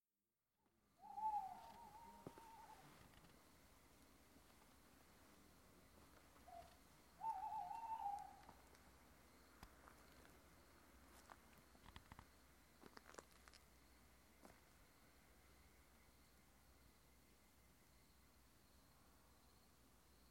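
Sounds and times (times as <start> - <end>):
faint background hiss: 0.7 - 20.3
owl hoots: 1.0 - 3.3, 6.4 - 8.8.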